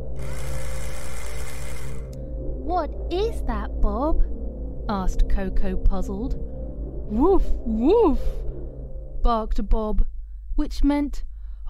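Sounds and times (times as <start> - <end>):
broken engine loud mechanical whirring: 0.0 - 2.2
speech: 2.7 - 6.5, 7.1 - 8.4, 9.2 - 11.6.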